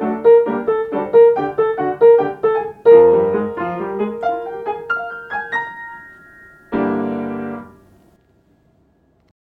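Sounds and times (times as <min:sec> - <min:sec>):
melody: 0:00.5 - 0:07.8.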